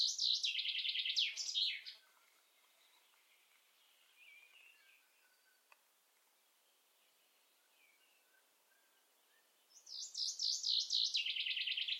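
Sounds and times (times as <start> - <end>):
common chaffinch singing a fast tumbling phrase: 0.0 - 5.8, 7.1 - 11.9.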